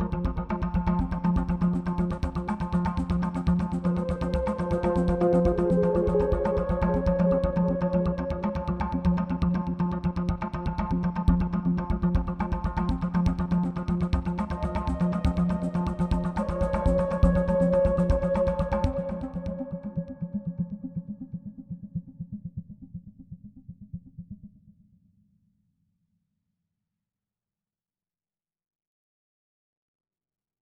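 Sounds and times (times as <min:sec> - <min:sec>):
tense clicky music bed: 0:00.1 - 0:19.7.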